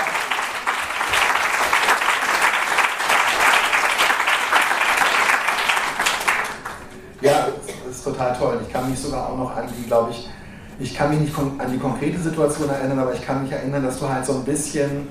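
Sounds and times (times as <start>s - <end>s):
crowd applause: 0.0s - 7.1s
speech: 8.1s - 15.1s.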